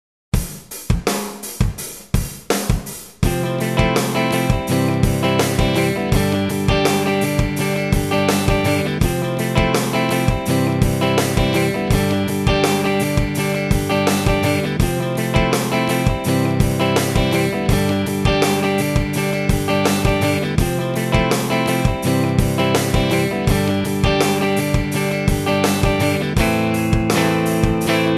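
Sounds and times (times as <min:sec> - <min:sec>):
rhythm guitar: 0:00.4 - 0:28.1.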